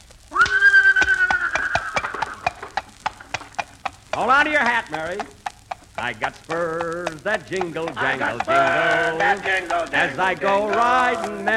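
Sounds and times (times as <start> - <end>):
horse hooves clip-clopping: 0.0 - 11.5
horse pulling a buggy whinnying: 0.4 - 2.8
speech: 4.2 - 5.4, 6.0 - 11.5.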